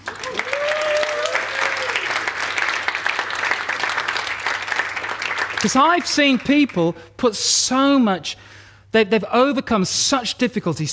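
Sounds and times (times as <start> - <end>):
crowd applause: 0.0 - 6.4
speech: 5.6 - 10.9.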